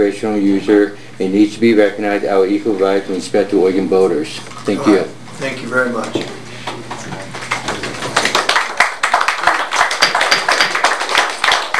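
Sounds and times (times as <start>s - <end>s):
speech: 0.0s - 6.4s
people clapping at a meeting: 6.6s - 11.7s.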